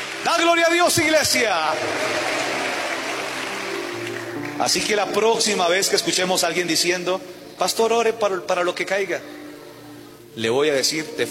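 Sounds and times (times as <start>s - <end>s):
audience applause: 0.0s - 5.9s
speech: 0.2s - 2.5s, 4.6s - 9.4s, 10.4s - 11.2s.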